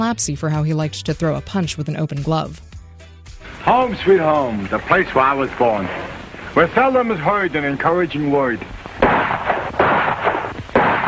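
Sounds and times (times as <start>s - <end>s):
speech: 0.0s - 2.7s, 3.6s - 9.1s
noisy, dull old film soundtrack: 2.7s - 11.0s
gunshots in an old film: 4.8s - 11.0s.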